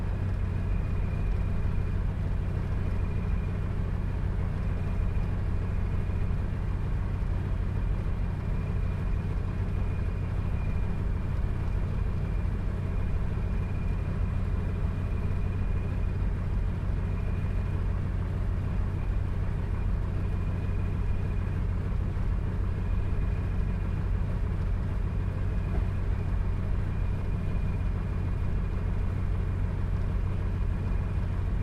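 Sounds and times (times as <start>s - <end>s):
CA-13 Boomerang aircraft taxiing heard from interior: 0.0s - 31.5s.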